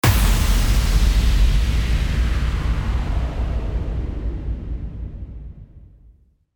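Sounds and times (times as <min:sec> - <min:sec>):
impact: 0:00.0 - 0:04.2.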